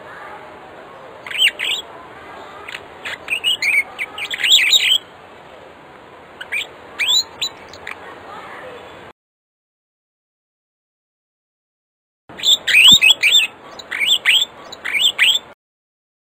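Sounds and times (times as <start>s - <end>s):
African starling singing with whistled notes: 1.2s - 1.8s, 2.7s - 5.1s, 6.4s - 8.0s, 12.4s - 15.6s.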